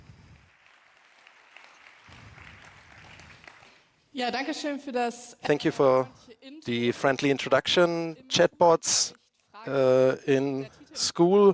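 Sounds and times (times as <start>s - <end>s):
audience clapping: 0.0s - 4.1s
speech: 4.2s - 11.5s.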